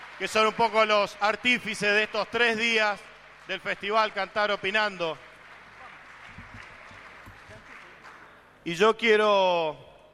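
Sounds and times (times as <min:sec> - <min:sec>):
audience applause: 0:00.0 - 0:08.5
speech: 0:00.2 - 0:05.3, 0:08.7 - 0:09.9.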